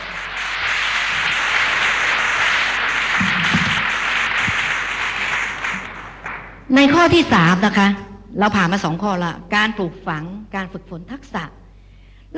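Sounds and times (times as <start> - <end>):
audience applause: 0.0 - 7.1
speech: 6.7 - 11.6.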